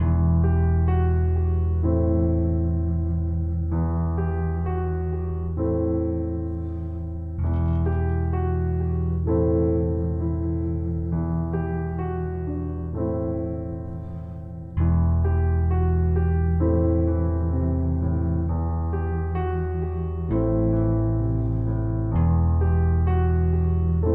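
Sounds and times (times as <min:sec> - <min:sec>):
piano: 0:00.0 - 0:24.1.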